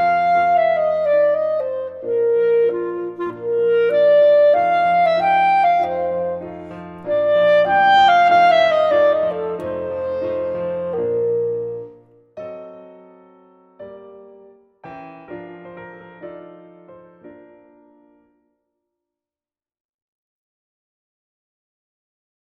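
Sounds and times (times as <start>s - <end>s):
clarinet playing a theme: 0.0s - 18.3s.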